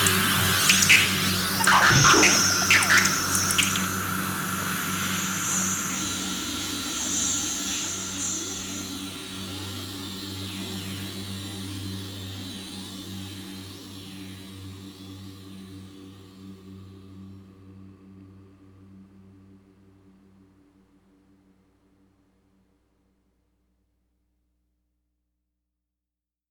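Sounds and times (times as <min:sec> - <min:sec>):
death ambient: 0:00.0 - 0:08.6.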